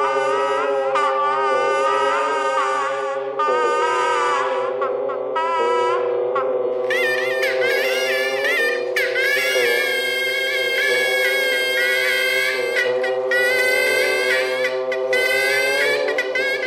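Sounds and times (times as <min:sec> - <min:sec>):
bagpipe: 0:00.0 - 0:16.6
radio: 0:01.6 - 0:16.6
geese: 0:03.4 - 0:16.6.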